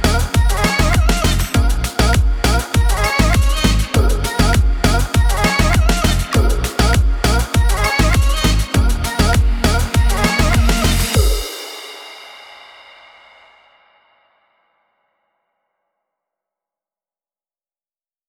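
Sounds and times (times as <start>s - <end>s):
reggaeton music: 0.0s - 12.4s.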